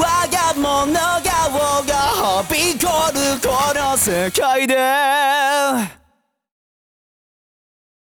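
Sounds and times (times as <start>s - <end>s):
a cappella singing: 0.0s - 6.0s.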